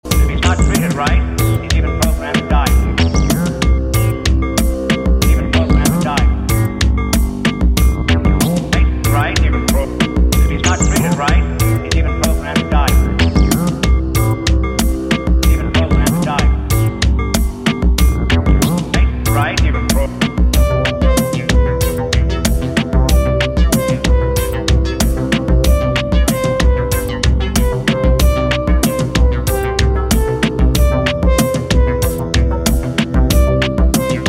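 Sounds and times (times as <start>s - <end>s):
bass machine with horn: 0.0s - 34.2s.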